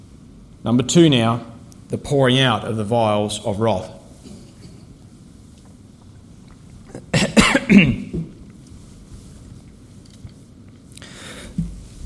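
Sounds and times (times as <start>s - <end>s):
speech: 0.6s - 4.0s
person coughing after choking on water: 6.9s - 8.2s.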